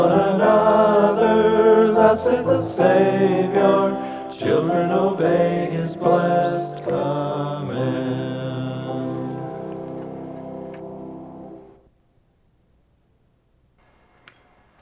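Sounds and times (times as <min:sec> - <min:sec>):
hymn: 0:00.0 - 0:11.1.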